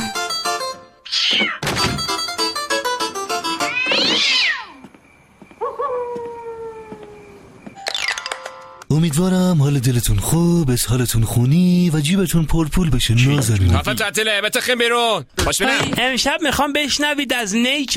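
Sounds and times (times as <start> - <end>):
plucked harpsichord notes: 0.0 - 1.0, 2.0 - 3.7
cat meowing restlessly: 1.0 - 1.6, 3.6 - 4.8
speech: 9.1 - 17.9.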